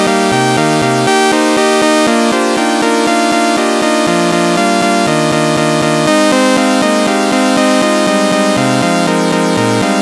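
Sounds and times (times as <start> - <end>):
sawtooth synth major pentatonic melody: 0.0 - 10.0.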